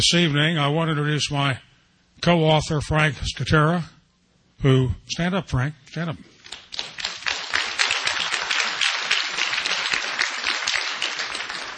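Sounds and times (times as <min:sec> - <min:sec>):
speech: 0:00.0 - 0:04.0, 0:04.6 - 0:06.9
audience applause: 0:06.5 - 0:11.7.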